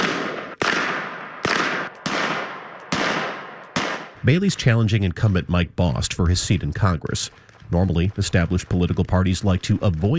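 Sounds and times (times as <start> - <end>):
gunshots fired at a paper target: 0.0 - 4.3, 7.2 - 10.1
speech: 4.2 - 10.1.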